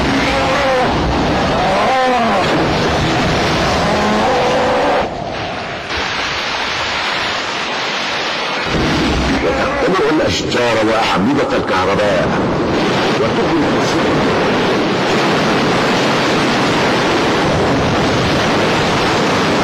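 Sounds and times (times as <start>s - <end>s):
strong destructive wind storm: 0.0s - 19.6s
speech: 10.3s - 12.6s, 13.2s - 14.4s.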